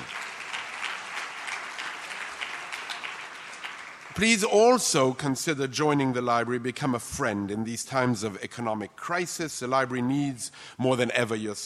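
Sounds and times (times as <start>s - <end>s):
audience applause: 0.0s - 4.8s
speech: 4.2s - 11.6s.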